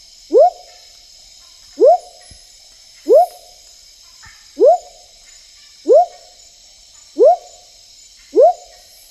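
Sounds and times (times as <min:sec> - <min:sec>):
smoky jungle frog Leptodactylus pentadactylus giving rising whoop notes in the Ecuadorian Amazon: 0:00.3 - 0:00.7, 0:01.8 - 0:02.2, 0:03.1 - 0:03.5, 0:04.6 - 0:05.0, 0:05.8 - 0:06.3, 0:07.2 - 0:07.6, 0:08.3 - 0:08.8.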